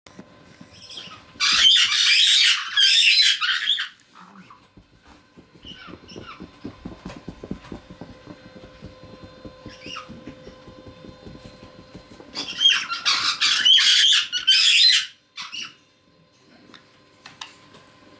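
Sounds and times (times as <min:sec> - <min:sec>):
caique giving harsh squawks: 0:00.9 - 0:04.0, 0:12.4 - 0:15.8.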